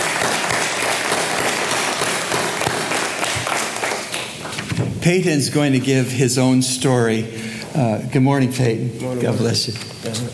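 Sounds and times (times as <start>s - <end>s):
audience applauding: 0.0s - 4.7s
speech: 5.0s - 10.3s.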